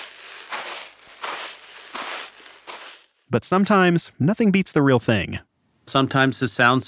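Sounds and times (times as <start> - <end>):
footsteps in a sand pit as snow: 0.0 - 3.3
speech: 3.3 - 6.8.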